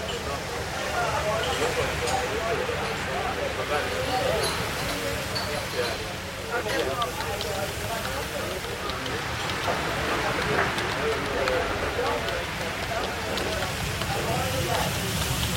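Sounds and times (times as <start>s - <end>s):
murmur of overlapping voices in a coffee shop: 0.0s - 15.5s
faint clicks and clinks: 3.9s - 15.5s.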